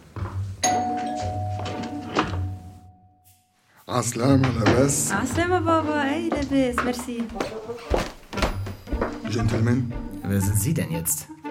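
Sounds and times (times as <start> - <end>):
doorbell ringing: 0.6 - 3.4
speech: 3.9 - 8.1, 9.3 - 11.4.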